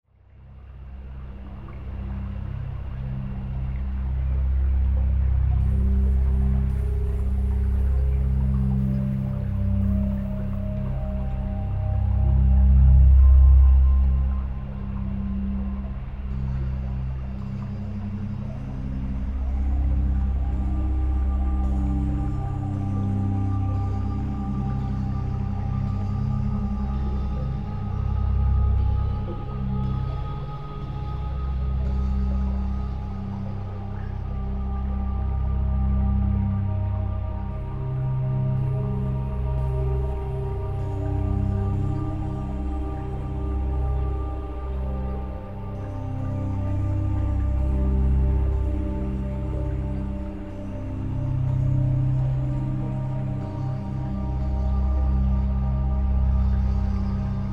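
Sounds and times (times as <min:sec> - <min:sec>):
theta meditation tones: 0:01.8 - 0:57.5.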